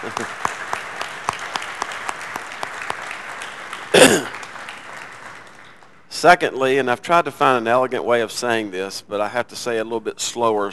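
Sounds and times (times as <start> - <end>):
speech: 0.0 - 0.5, 4.1 - 4.4, 6.2 - 10.7
audience applause for spouses of public servants: 0.0 - 5.9.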